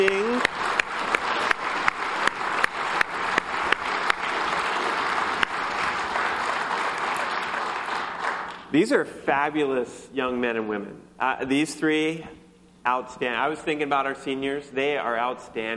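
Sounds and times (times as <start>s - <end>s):
audience applauding three graduating high school seniors: 0.0s - 8.7s
speech: 8.8s - 15.7s.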